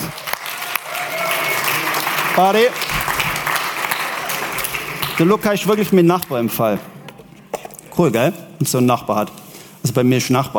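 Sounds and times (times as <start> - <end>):
crowd applause: 0.0 - 5.9
speech: 2.4 - 2.9, 5.2 - 6.9, 8.0 - 10.5.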